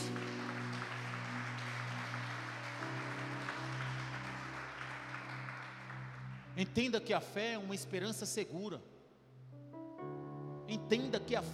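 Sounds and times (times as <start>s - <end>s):
sustained organ-like keyboard chords: 0.0s - 4.6s, 9.4s - 11.5s
audience applause: 0.0s - 6.6s
speech: 6.6s - 8.9s, 10.9s - 11.5s.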